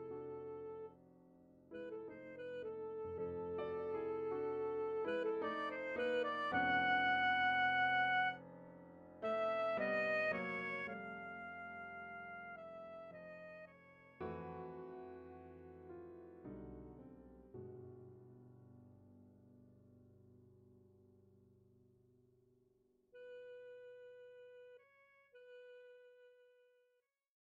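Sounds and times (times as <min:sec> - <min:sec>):
piano etude: 0:00.0 - 0:21.4.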